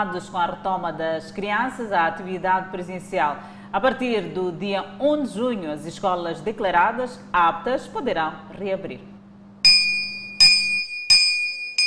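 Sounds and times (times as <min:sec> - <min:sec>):
speech: 0:00.0 - 0:09.1
school bell ringing: 0:09.7 - 0:11.8.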